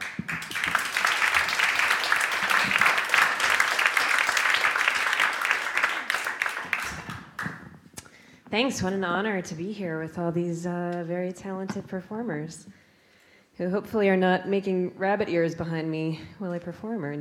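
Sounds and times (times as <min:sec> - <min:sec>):
audience applause welcoming a poet in Seattle: 0:00.0 - 0:07.6
speech: 0:08.5 - 0:12.8, 0:13.6 - 0:17.1.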